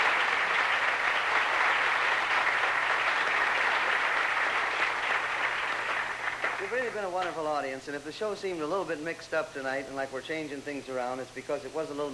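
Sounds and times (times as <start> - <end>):
audience applause for orchestra: 0.0 - 7.3
speech: 6.7 - 12.1.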